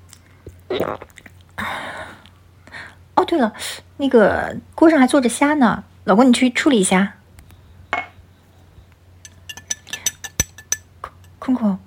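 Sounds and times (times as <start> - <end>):
speech: 0.7 - 1.8, 3.2 - 7.2
glasses clinking in a toast: 9.2 - 11.4.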